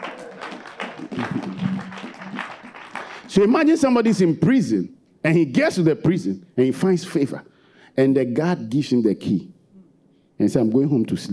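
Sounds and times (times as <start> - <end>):
audience clapping hands: 0.0 - 4.3
speech: 3.4 - 9.5, 10.4 - 11.3.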